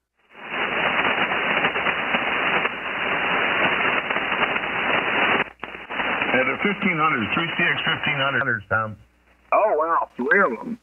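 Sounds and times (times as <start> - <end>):
80 meter HF radio static from lightning: 0.0 - 10.8
lightning crashes on shortwave radio: 0.4 - 8.1
speech: 6.6 - 9.1, 10.1 - 10.8.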